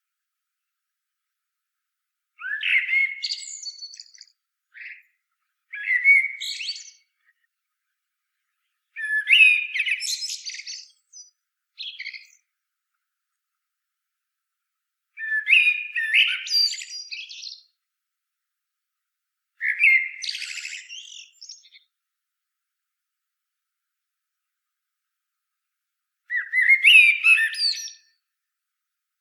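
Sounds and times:
common blackbird fluty warbling song: 2.4s - 7.5s, 8.6s - 12.5s, 15.2s - 17.8s, 19.6s - 21.9s, 26.3s - 28.2s.

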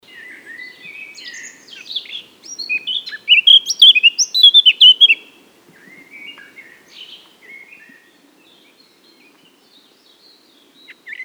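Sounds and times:
Eurasian blackcap song: 0.1s - 5.4s.

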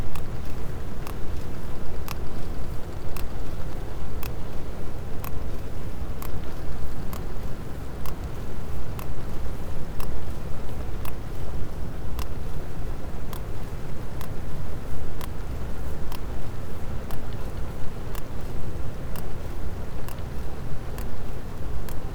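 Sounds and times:
sperm whale Physeter macrocephalus clicking: 0.0s - 22.1s.

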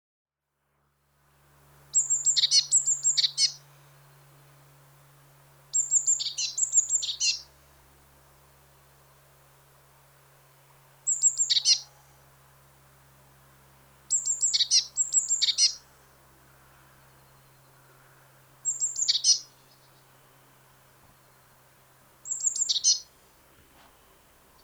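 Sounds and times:
Eurasian blue tit calling: 1.9s - 3.7s, 5.7s - 7.6s, 11.1s - 12.2s, 14.1s - 16.1s, 18.6s - 20.2s, 22.2s - 23.2s.

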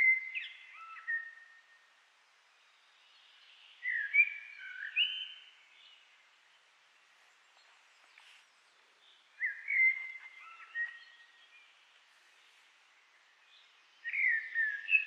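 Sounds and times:
common blackbird song: 0.0s - 1.6s, 3.2s - 6.0s, 9.0s - 11.7s, 13.4s - 15.0s.

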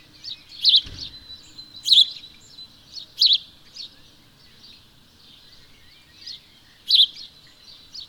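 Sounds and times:
house sparrow chirping: 0.0s - 8.0s
low thump: 0.8s - 2.1s.

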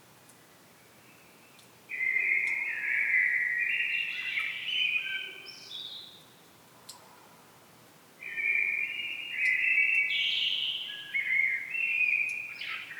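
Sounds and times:
common blackbird singing: 1.9s - 6.2s, 8.2s - 12.9s.

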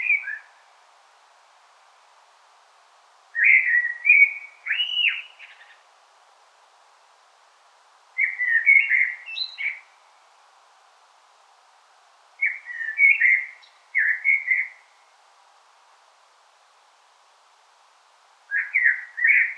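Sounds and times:
Common blackbird song: 0.0s - 0.6s, 3.4s - 5.8s, 8.2s - 10.0s, 12.4s - 14.9s, 18.5s - 19.5s.

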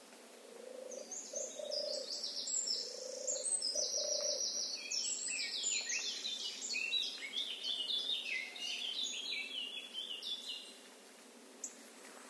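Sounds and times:
deeper bird giving soft hooting notes: 0.4s - 6.0s
Eurasian blackcap warbling song: 0.6s - 10.9s.

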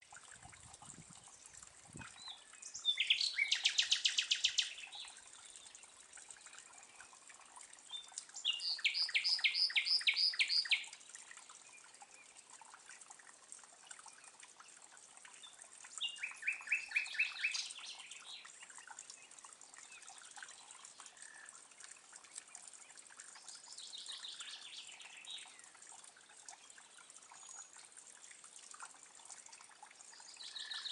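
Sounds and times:
Common nightingale singing: 2.2s - 5.1s, 8.4s - 10.9s, 16.0s - 18.0s.

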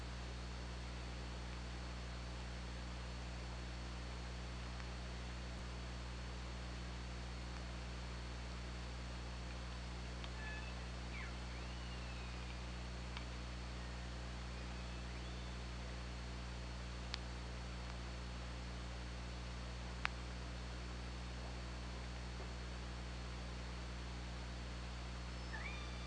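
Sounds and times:
low hum: 0.0s - 26.0s
orca calls: 10.4s - 12.6s, 13.8s - 15.7s, 25.4s - 26.0s.

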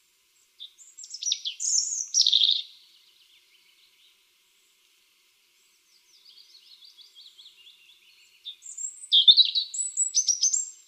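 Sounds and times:
European robin song phrase: 0.4s - 4.8s, 5.6s - 10.8s.

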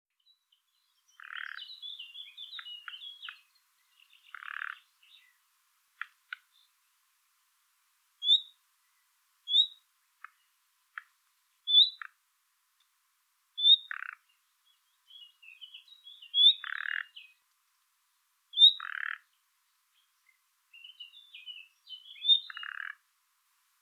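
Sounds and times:
common nightingale calling: 0.2s - 5.4s, 8.2s - 11.1s, 11.7s - 12.2s, 13.6s - 17.4s, 18.5s - 23.0s.

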